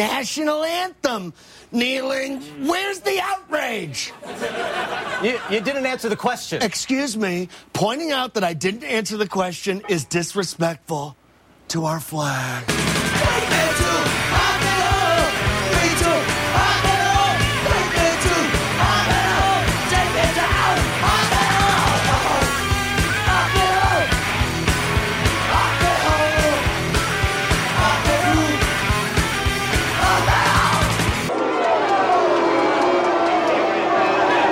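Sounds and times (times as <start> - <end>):
speech: 0.0 - 12.9
laughter: 4.0 - 7.1
crowd booing John McCain: 12.7 - 34.5.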